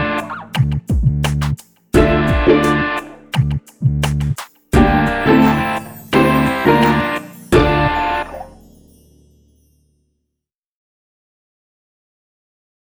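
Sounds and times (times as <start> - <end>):
instrumental music: 0.0 - 9.9.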